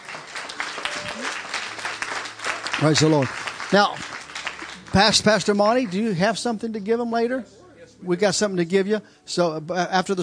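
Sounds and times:
church audience applauding: 0.0 - 6.4
speech: 2.8 - 4.1, 4.9 - 10.2.

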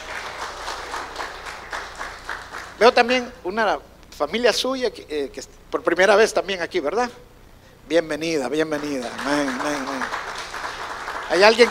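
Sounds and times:
audience applause: 0.0 - 2.9, 8.7 - 11.6
speech: 2.8 - 7.3, 7.9 - 10.2, 11.3 - 11.6.

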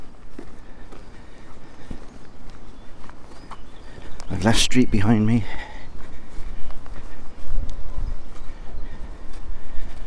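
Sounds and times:
footsteps through fields on the way to Blackpool Sands: 0.0 - 10.0
speech: 4.3 - 5.7.

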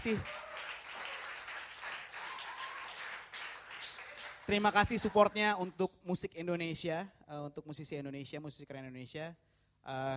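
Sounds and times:
speech: 0.0 - 0.4, 4.5 - 10.1
audience applauding: 0.0 - 5.6.

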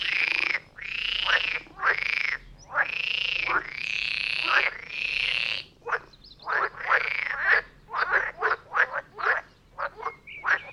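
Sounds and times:
frogs croaking in chorus: 0.0 - 10.7.

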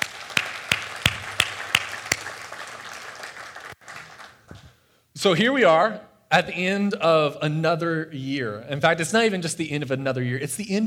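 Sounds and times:
applause: 0.0 - 4.7
speech: 5.2 - 10.8.

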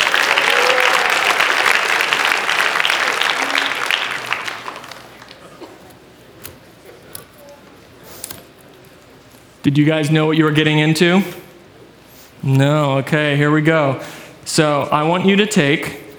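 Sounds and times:
audience applause: 0.0 - 6.1
speech: 9.6 - 11.4, 12.5 - 16.0.

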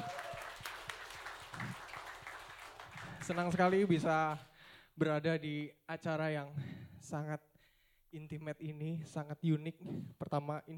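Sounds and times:
audience applause: 0.0 - 3.9
speech: 3.2 - 7.5, 8.1 - 10.7.

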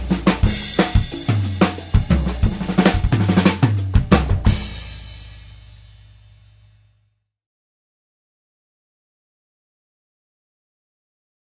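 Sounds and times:
drums: 0.0 - 6.9.

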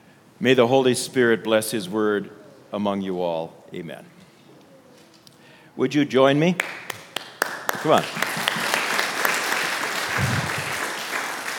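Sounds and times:
speech: 0.4 - 4.2, 5.8 - 6.8, 7.8 - 8.2
audience applause: 6.6 - 11.5.

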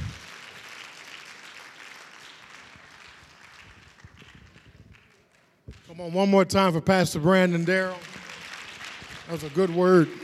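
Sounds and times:
audience clapping hands: 0.0 - 10.2
speech: 6.0 - 8.1, 9.3 - 10.2.

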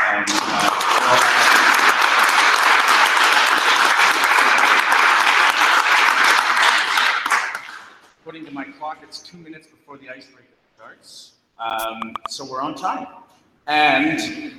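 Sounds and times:
audience applause: 0.1 - 8.0
speech: 9.3 - 14.5.

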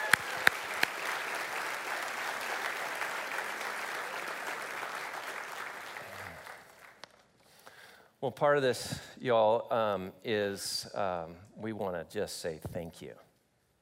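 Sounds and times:
audience round of applause: 0.0 - 7.0
speech: 8.2 - 13.2.

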